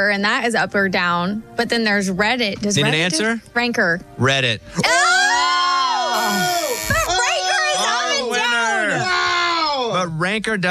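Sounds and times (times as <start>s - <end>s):
speech: 0.0s - 5.2s, 10.0s - 10.6s
crowd booing: 4.8s - 9.3s.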